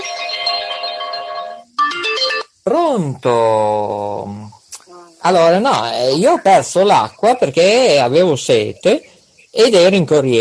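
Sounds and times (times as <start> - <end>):
telephone ringing with a melodic electronic ringtone for an incoming call: 0.0 - 2.5
speech: 2.6 - 4.6, 5.2 - 10.3.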